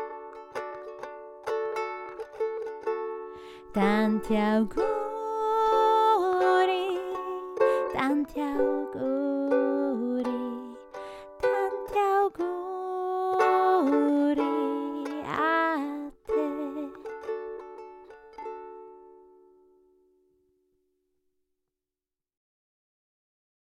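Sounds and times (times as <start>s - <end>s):
ukulele: 0.0s - 20.3s
woman singing in Italian: 3.5s - 17.4s.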